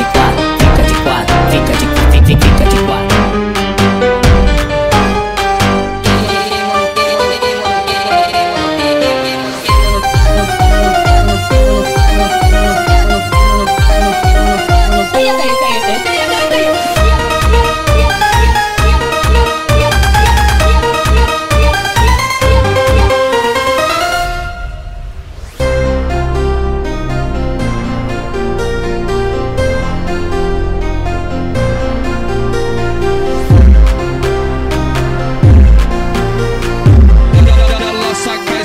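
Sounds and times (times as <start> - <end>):
phonk songs played on piano: 0.0 - 38.6.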